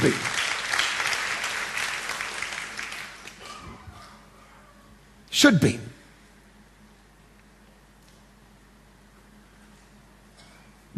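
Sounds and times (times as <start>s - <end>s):
speech: 0.0s - 0.3s, 5.4s - 5.9s
audience applause: 0.0s - 3.8s.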